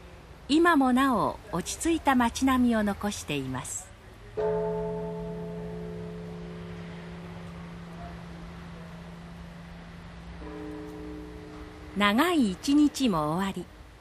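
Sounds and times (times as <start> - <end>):
faint wind-like noise: 0.0 - 13.9
speech: 0.5 - 3.8, 4.4 - 4.6, 12.0 - 13.7
deep temple bell ringing over the town: 4.4 - 13.3.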